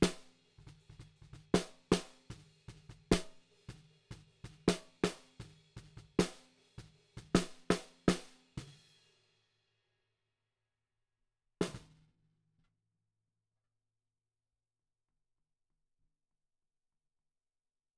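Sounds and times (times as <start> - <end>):
snare drum: 0.0 - 8.8, 11.6 - 12.0.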